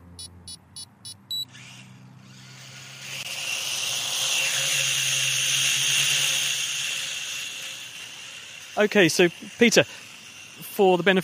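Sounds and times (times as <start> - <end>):
small hobby drone beeping: 0.0 - 1.6
small hobby drone motors buzzing: 0.0 - 11.2
speech: 8.8 - 10.0, 10.8 - 11.2.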